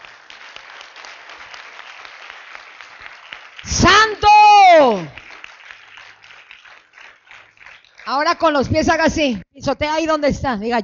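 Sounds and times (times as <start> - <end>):
audience applauding loudly: 0.0 - 8.6
speech: 8.2 - 10.8.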